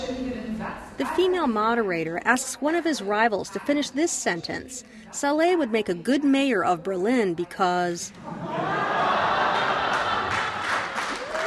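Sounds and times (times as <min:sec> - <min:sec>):
speech: 0:00.7 - 0:08.9
audience laughter: 0:08.2 - 0:11.0
audience applause: 0:08.6 - 0:11.4.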